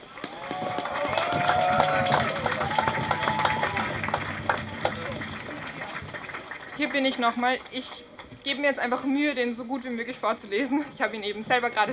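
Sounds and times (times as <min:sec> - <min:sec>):
audience applause: 0:00.0 - 0:07.8
speech: 0:06.9 - 0:11.9.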